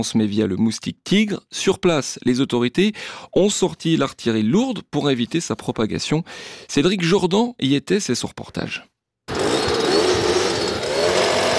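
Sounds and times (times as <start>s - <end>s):
speech: 0.0s - 8.9s
motorized insecticide mist blower spraying: 9.3s - 11.5s.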